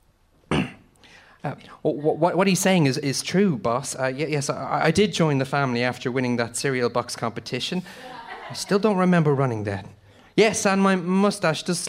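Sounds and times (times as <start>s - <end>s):
man clearing his throat: 0.5s - 0.9s
speech: 1.4s - 11.8s
laughter: 7.9s - 9.0s.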